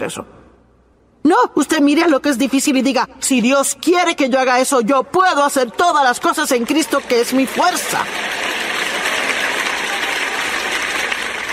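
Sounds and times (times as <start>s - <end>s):
speech: 0.0s - 0.4s, 1.2s - 8.4s
crowd clapping: 6.2s - 11.5s.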